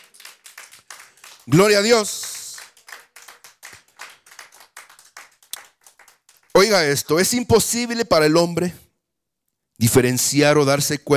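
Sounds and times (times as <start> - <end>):
audience clapping hands loudly: 0.0 - 7.0
speech: 1.5 - 2.3, 6.6 - 8.9, 9.8 - 11.1.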